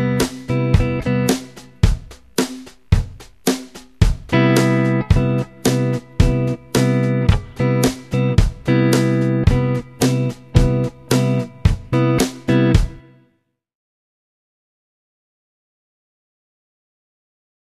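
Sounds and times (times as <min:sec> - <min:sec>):
rhythm guitar: 0:00.0 - 0:13.2.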